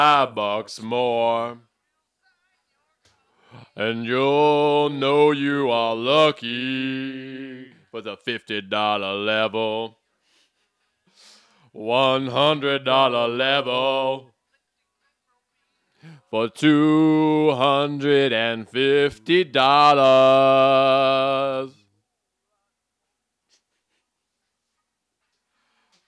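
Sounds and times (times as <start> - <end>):
background vocals: 0.0 - 1.8, 3.1 - 10.0, 11.2 - 14.4, 16.0 - 21.9.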